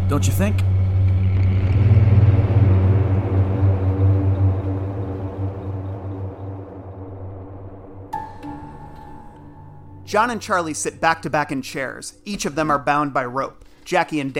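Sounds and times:
road rumble: 0:00.0 - 0:08.2
car engine drone while driving on road at night: 0:00.0 - 0:08.3
speech: 0:00.1 - 0:00.7, 0:10.1 - 0:14.3.

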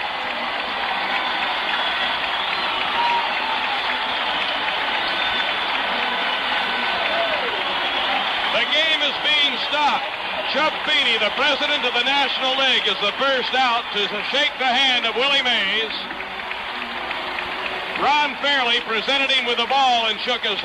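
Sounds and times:
huge stadium crowd cheering and applauding: 0:00.0 - 0:20.6
shrill whistles from stadium crowd: 0:01.0 - 0:08.8
speech: 0:09.8 - 0:16.1, 0:18.0 - 0:20.6.

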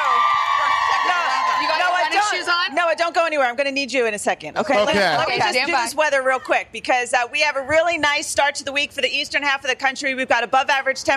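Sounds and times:
studio crowd cheering: 0:00.0 - 0:02.8
speech: 0:02.3 - 0:11.1.

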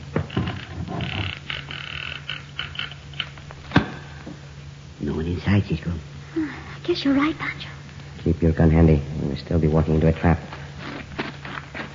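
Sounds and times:
creaking door being pulled open: 0:00.1 - 0:03.4
speech: 0:05.4 - 0:10.6.

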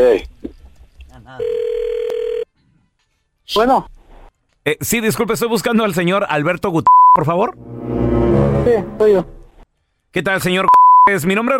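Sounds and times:
speech: 0:00.0 - 0:00.3, 0:03.5 - 0:03.9, 0:04.7 - 0:07.8, 0:08.4 - 0:09.4, 0:10.1 - 0:11.5
telephone ringback tone: 0:01.4 - 0:02.5.

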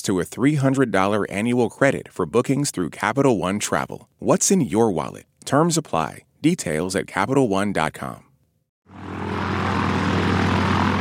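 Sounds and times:
speech: 0:00.0 - 0:08.3
propeller airplane engine in flight: 0:08.9 - 0:10.9.

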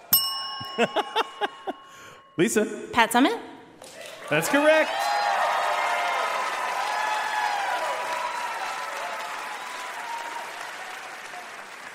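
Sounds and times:
speech: 0:00.6 - 0:01.8, 0:02.4 - 0:03.5, 0:04.3 - 0:05.0
audience cheering and applause: 0:03.8 - 0:11.9.

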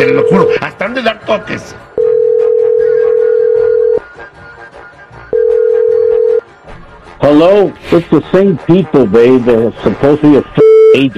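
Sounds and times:
speech: 0:00.0 - 0:01.9, 0:07.3 - 0:11.1
long electronic telephone tones of a call being dialed: 0:02.0 - 0:04.0, 0:05.3 - 0:06.4.

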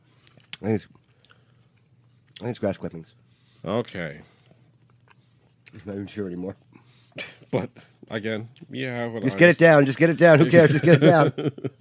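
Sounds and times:
person chewing food: 0:00.2 - 0:01.9
speech: 0:00.6 - 0:01.0, 0:02.4 - 0:04.4, 0:05.7 - 0:06.6, 0:07.2 - 0:11.7
laughter: 0:10.3 - 0:11.7.

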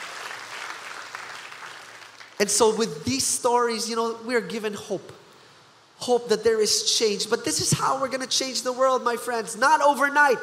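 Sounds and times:
audience clapping hands: 0:00.0 - 0:02.5
speech: 0:02.4 - 0:05.2, 0:06.0 - 0:10.4.

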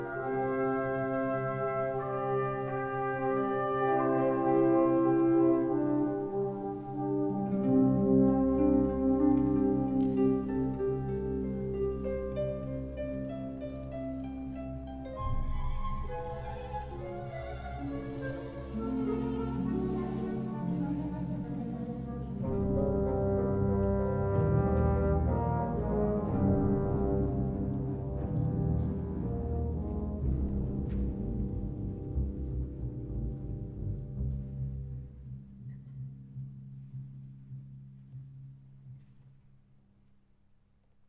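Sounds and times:
orchestral brass horns sounding a call motif: 0:00.0 - 0:09.8, 0:18.5 - 0:30.6
full orchestral ensemble playing: 0:00.0 - 0:35.5.

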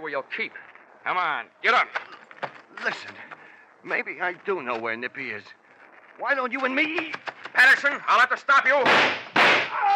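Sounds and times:
speech: 0:00.1 - 0:02.2, 0:02.8 - 0:05.6, 0:06.2 - 0:09.2
gunshot sound effect in an old radio detective drama: 0:08.8 - 0:09.8.

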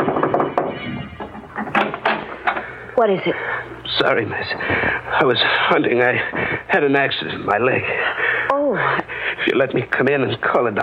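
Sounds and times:
knocking on a wooden door: 0:00.0 - 0:02.2
speech: 0:03.0 - 0:10.8.

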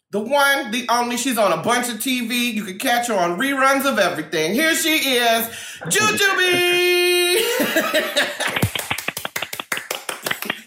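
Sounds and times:
speech: 0:00.1 - 0:08.7
laughter: 0:07.3 - 0:09.7
two people clapping: 0:08.2 - 0:10.6.

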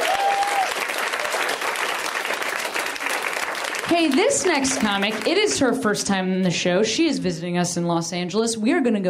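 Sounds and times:
audience applause at a comedy show in Los Angeles: 0:00.0 - 0:05.7
speech: 0:03.9 - 0:09.0.

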